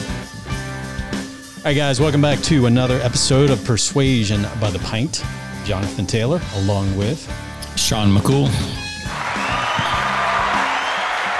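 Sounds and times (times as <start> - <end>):
speech: 1.6 - 8.8
applause: 9.0 - 11.3.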